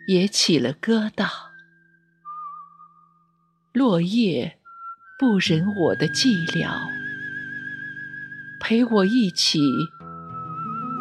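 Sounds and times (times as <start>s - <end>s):
speech: 0.1s - 1.5s, 3.8s - 4.6s, 5.2s - 7.0s, 8.6s - 10.0s
person whistling a tune: 1.6s - 3.2s, 4.6s - 8.6s, 9.8s - 10.9s.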